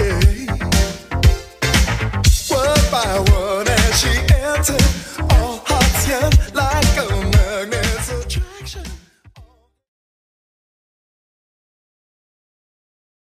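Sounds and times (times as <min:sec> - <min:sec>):
80s style music at 118 bpm: 0:00.0 - 0:09.6.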